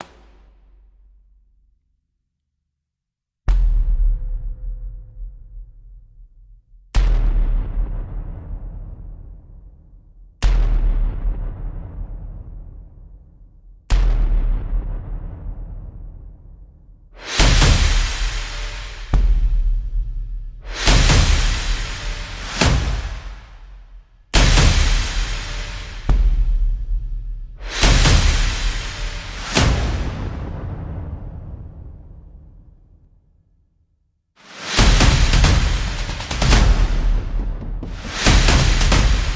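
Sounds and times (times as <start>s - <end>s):
percussion: 0.0s - 1.7s, 3.4s - 33.6s, 34.4s - 39.3s.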